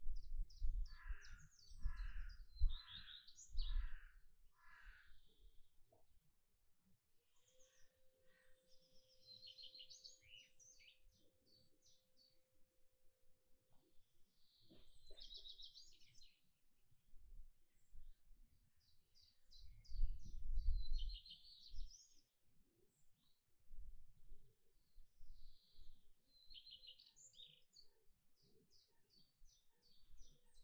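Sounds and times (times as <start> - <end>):
birds singing in a garden: 0.2 - 5.5, 7.4 - 12.4, 14.4 - 16.4, 18.8 - 22.2, 24.8 - 30.6.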